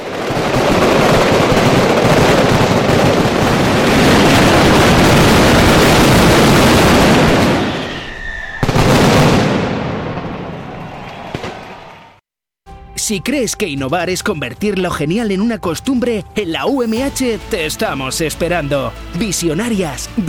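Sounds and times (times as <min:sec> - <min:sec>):
mascletà firecracker barrage: 0:00.0 - 0:11.8, 0:16.7 - 0:18.7
speech: 0:13.1 - 0:20.2.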